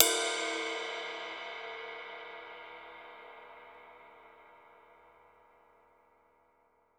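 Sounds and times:
dry ride cymbal: 0:00.0 - 0:04.2.

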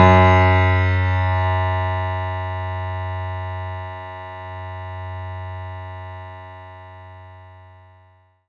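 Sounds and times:
synth note F#2: 0:00.0 - 0:06.0.

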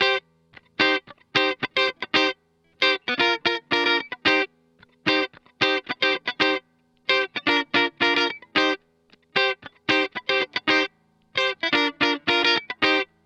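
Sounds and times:
disco guitar: 0:00.0 - 0:13.2.

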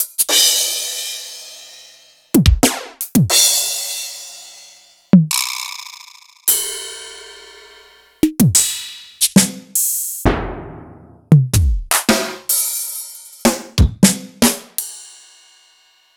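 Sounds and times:
Yamaha RY20 drum machine samples sliced: 0:00.0 - 0:00.6, 0:02.4 - 0:03.5, 0:05.2 - 0:05.9, 0:08.2 - 0:14.8.

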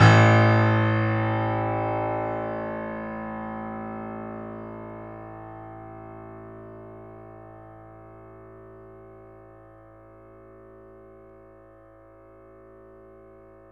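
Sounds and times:
3D Boesendorfer piano A note: 0:00.0 - 0:13.7.

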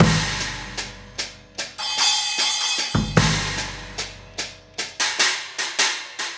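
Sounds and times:
kick drum: 0:00.0 - 0:02.2, 0:02.9 - 0:04.9
hi-hat: 0:00.0 - 0:06.3.

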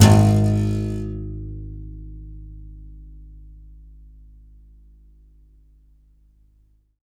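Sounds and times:
contrabass balalaika plucked strings: 0:00.0 - 0:03.9.

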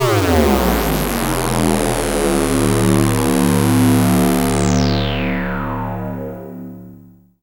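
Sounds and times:
synth glide: 0:00.0 - 0:07.0.

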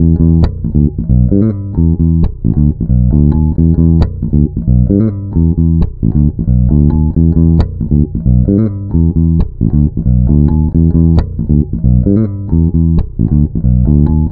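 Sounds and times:
electro lounge bass: 0:00.0 - 0:14.3.

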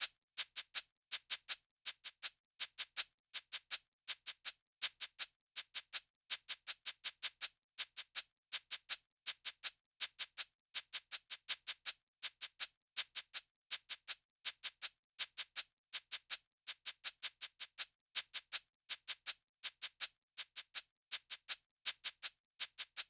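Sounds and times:
shaker in C minor drum track: 0:00.0 - 0:23.0.

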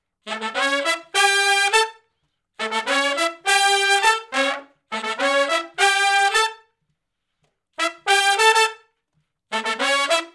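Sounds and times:
R and B horn section riff in unison: 0:00.2 - 0:02.0, 0:02.6 - 0:06.6, 0:07.8 - 0:08.9, 0:09.5 - 0:10.3.

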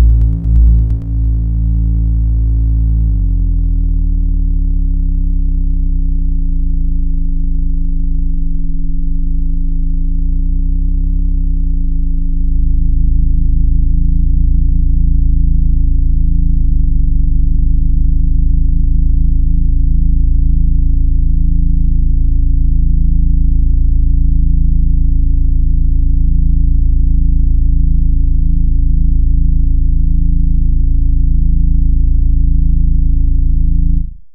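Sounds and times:
sliced bass drone: 0:00.0 - 0:34.3.

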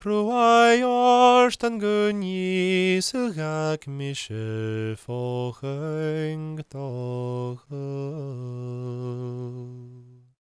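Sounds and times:
Gaelic singing voices: 0:00.0 - 0:10.3.

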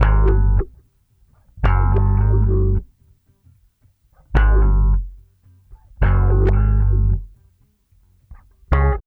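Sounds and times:
funky bass: 0:00.0 - 0:00.8, 0:01.6 - 0:02.9, 0:04.2 - 0:07.4, 0:08.3 - 0:09.0.

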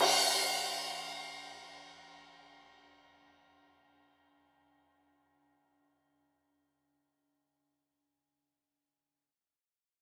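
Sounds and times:
15 inch crash cymbal edge hit: 0:00.0 - 0:02.2.

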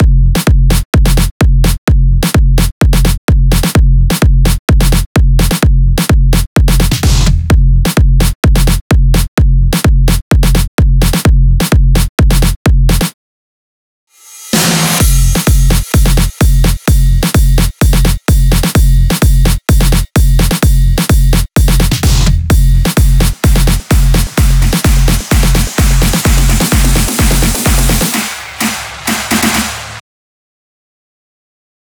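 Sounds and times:
full drum beat at 128 BPM: 0:00.0 - 0:13.1, 0:14.6 - 0:30.0.

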